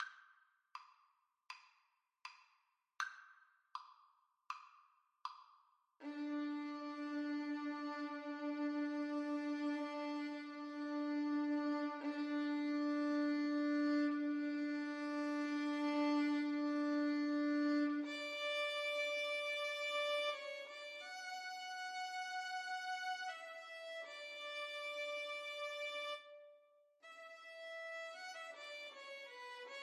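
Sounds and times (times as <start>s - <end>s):
violin duet: 6.0s - 26.4s, 27.1s - 29.8s.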